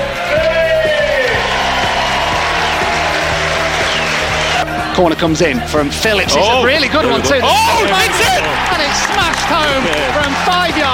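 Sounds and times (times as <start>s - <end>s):
football stadium crowd cheering: 0.0s - 10.9s
speech: 5.0s - 10.9s
laughter: 6.3s - 10.9s.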